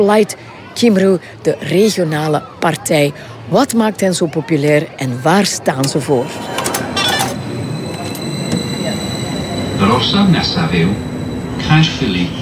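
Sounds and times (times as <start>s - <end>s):
speech: 0.0s - 6.7s, 9.9s - 12.4s
train approaching the station at Caerphilly: 5.7s - 12.4s.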